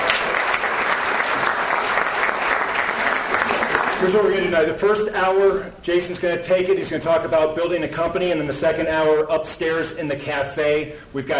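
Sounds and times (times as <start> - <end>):
audience applause: 0.0 - 4.5
speech: 4.0 - 11.3.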